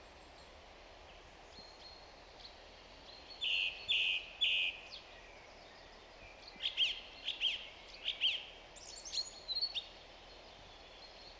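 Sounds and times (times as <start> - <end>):
song thrush Turdus philomelos singing: 0.0 - 11.3.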